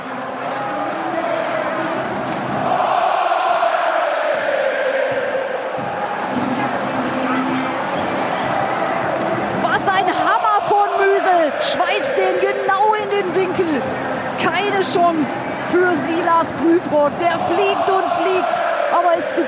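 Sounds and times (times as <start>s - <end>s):
fans celebrating at the Hafenstraße: 0.0s - 19.4s
speech: 15.0s - 18.5s.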